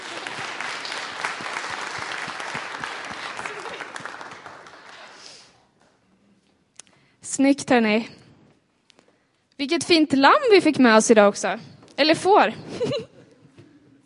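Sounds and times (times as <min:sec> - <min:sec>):
crowd applause: 0:00.0 - 0:05.5
laughter: 0:02.8 - 0:04.6, 0:12.7 - 0:14.0
speech: 0:07.4 - 0:08.2, 0:09.6 - 0:13.0.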